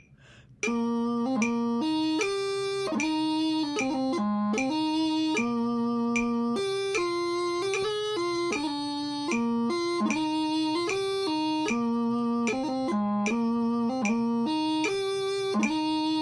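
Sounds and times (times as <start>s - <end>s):
pipes: 0.7s - 16.2s.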